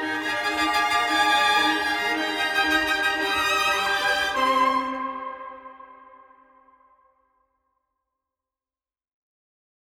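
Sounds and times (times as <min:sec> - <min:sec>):
violin sextet playing moderato con brio: 0:00.0 - 0:06.3.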